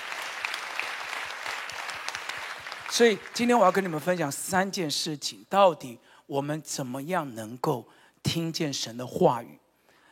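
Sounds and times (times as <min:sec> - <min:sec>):
audience applause: 0:00.0 - 0:04.1
speech: 0:02.9 - 0:09.6.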